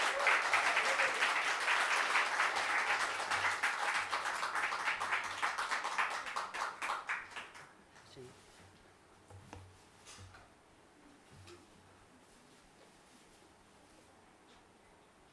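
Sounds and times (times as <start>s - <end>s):
audience applause: 0.0s - 7.7s.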